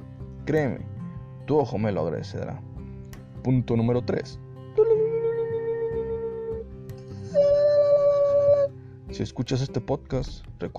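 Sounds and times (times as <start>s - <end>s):
speech: 0.5s - 0.9s, 1.5s - 2.7s, 3.4s - 4.4s, 9.1s - 10.7s
person moaning: 4.8s - 8.7s.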